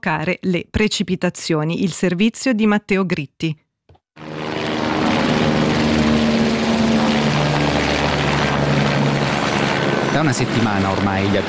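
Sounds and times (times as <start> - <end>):
speech: 0.0 - 3.6, 10.2 - 11.4
firefighting helicopters and Canadair water-bomber engines over Lago Maggiore during wildfires: 4.2 - 11.4.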